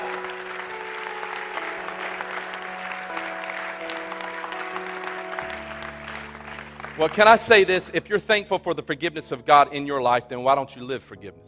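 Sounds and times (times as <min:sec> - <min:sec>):
audience hand clapping: 0:00.0 - 0:08.1
speech: 0:07.0 - 0:11.4.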